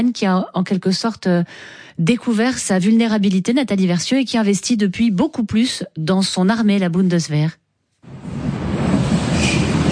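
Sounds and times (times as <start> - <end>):
speech: 0.0 - 8.4
last metro leaving Jungfernheide station in western Berlin: 8.1 - 9.9.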